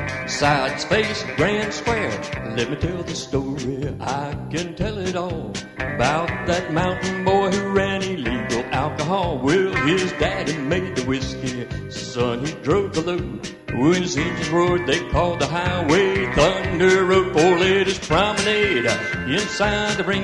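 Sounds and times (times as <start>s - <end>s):
vocals: 0.2s - 20.2s.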